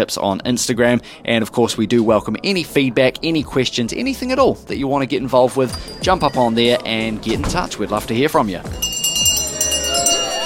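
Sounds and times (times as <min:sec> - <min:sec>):
speech: 0:00.0 - 0:09.0
soft clinks: 0:05.7 - 0:06.6, 0:08.8 - 0:10.4
last call bell ringing: 0:05.7 - 0:06.9, 0:08.7 - 0:10.4
low murmur of crowd: 0:08.7 - 0:10.4.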